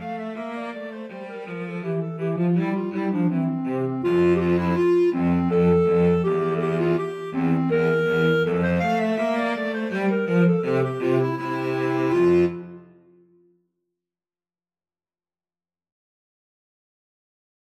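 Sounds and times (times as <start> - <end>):
cello in a clarinet-cello duet: 0.0 - 13.2
clarinet in a clarinet-cello duet: 0.0 - 13.4.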